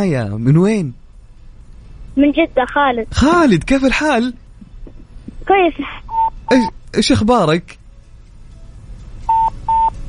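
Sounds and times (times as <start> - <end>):
speech: 0.0 - 1.0, 2.2 - 4.4, 5.5 - 7.8
low hum: 0.0 - 10.0
telephone line tone beeps as a phone call drops: 6.1 - 6.7, 9.3 - 9.9.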